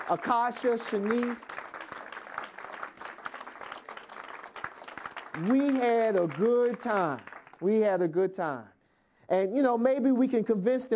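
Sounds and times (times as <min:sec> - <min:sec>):
audience applause thanking Meals on Wheels volunteers: 0:00.0 - 0:07.7
speech: 0:00.1 - 0:01.5, 0:05.4 - 0:08.7, 0:09.3 - 0:10.9.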